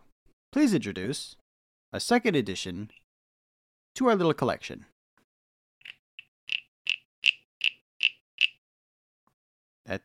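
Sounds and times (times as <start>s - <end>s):
speech: 0.5s - 3.0s, 4.0s - 4.9s, 9.9s - 10.0s
frog call device raspy clicking chirps: 5.8s - 8.6s.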